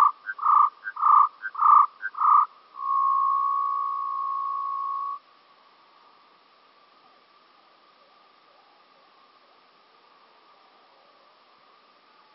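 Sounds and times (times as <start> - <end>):
bunting singing: 0.0 - 5.2.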